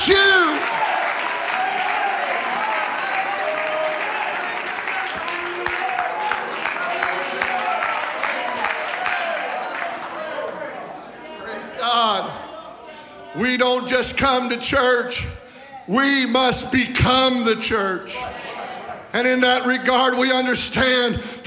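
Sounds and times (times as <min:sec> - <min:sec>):
audience clapping hands: 0:00.0 - 0:10.9
speech: 0:13.6 - 0:18.4, 0:19.1 - 0:21.4.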